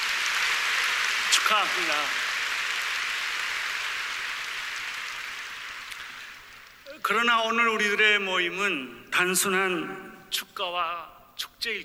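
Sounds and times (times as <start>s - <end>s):
audience applause at a 150th anniversary celebration: 0.0s - 6.8s
speech: 1.4s - 2.3s, 7.0s - 11.8s.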